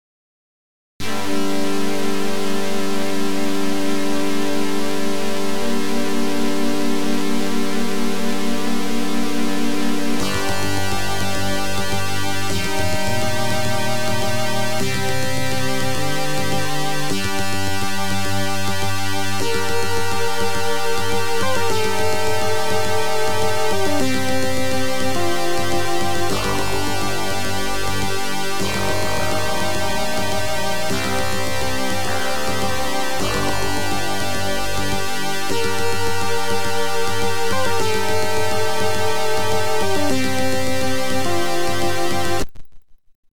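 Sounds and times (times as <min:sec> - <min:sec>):
OPL2 FM synth chip music: 0:01.0 - 0:42.6.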